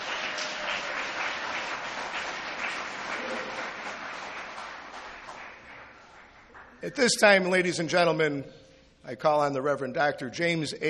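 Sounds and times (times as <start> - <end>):
audience applause: 0.0 - 6.8
speech: 6.8 - 10.8.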